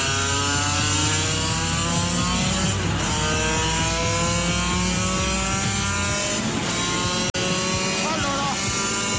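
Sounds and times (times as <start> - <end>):
motorcycle engine revving on straight: 0.0 - 9.1.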